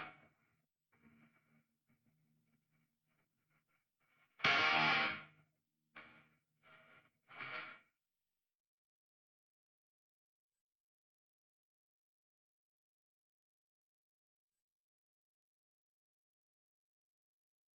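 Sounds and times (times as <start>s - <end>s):
guitar: 0.0s - 1.6s, 3.6s - 7.9s.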